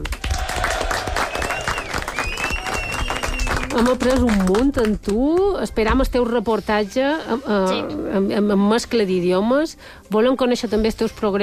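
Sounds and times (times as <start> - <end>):
audience applause: 0.0 - 4.6
speech: 3.8 - 11.4.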